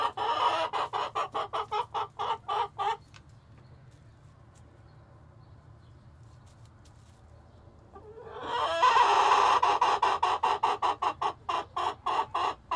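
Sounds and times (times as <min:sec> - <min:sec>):
chicken squawking: 0:00.0 - 0:03.0, 0:08.0 - 0:12.7.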